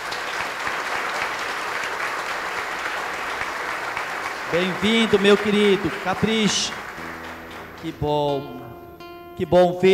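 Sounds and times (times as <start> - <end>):
audience applauding in welcome: 0.0 - 8.6
speech: 4.5 - 6.8, 7.8 - 8.7, 9.4 - 9.9.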